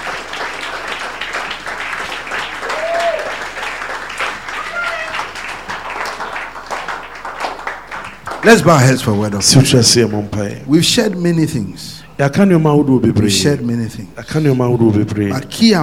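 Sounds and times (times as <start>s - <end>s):
audience clapping hands: 0.0s - 10.5s
faint voices and brief whoops: 2.6s - 3.5s, 4.4s - 5.4s
speech: 8.4s - 15.8s.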